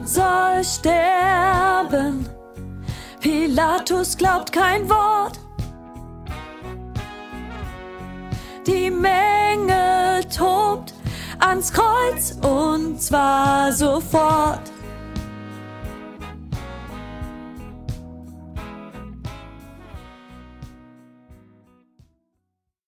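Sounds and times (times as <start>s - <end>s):
soprano singing solo: 0.0s - 2.4s, 3.1s - 5.5s, 8.6s - 14.9s.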